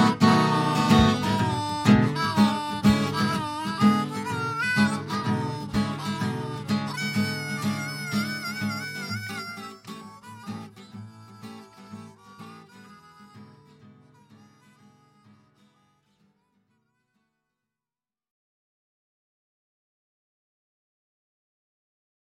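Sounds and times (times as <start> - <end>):
blues music: 0.0 - 16.2.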